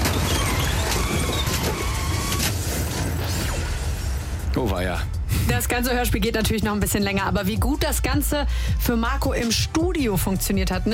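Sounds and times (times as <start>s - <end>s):
car accident sound effect at intersection: 0.0s - 4.9s
speech: 4.6s - 10.9s.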